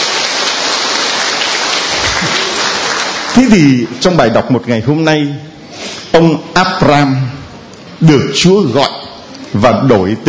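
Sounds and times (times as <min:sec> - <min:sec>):
loud applause: 0:00.0 - 0:04.0
speech: 0:03.4 - 0:05.5, 0:06.1 - 0:07.4, 0:08.0 - 0:08.9, 0:09.5 - 0:10.2.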